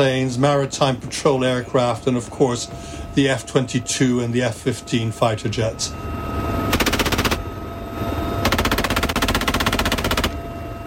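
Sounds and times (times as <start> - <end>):
speech: 0.0 - 6.3
machine gun fire during military exercise: 6.7 - 7.4, 8.4 - 10.4.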